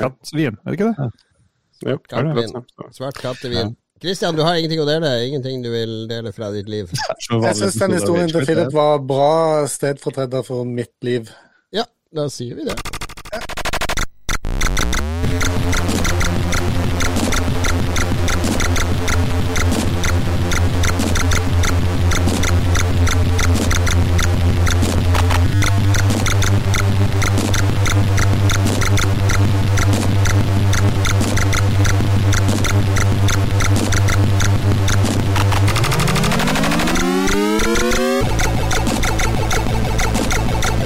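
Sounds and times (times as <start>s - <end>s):
speech: 0.0s - 13.5s
Commodore 64 game music: 14.6s - 40.8s.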